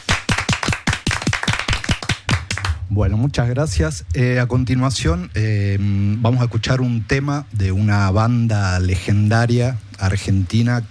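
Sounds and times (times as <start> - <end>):
applause: 0.0 - 2.8
speech: 3.0 - 10.8.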